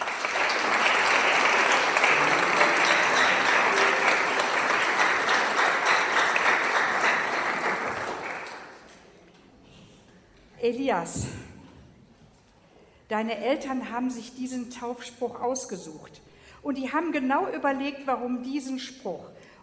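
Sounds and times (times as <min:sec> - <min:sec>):
audience applause: 0:00.0 - 0:08.9
speech: 0:10.7 - 0:11.4, 0:13.1 - 0:19.5.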